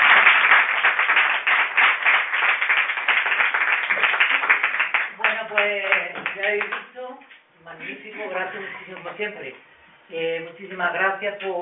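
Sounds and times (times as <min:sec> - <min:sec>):
group applause: 0:00.0 - 0:06.9
speech: 0:07.8 - 0:11.6.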